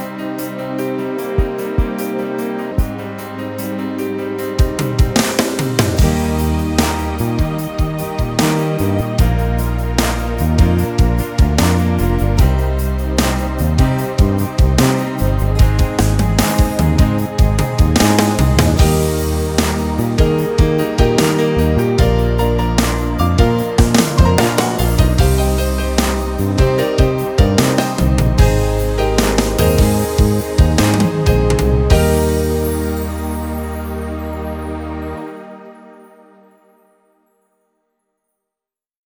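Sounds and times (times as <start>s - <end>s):
piano ballad: 0.0s - 36.4s.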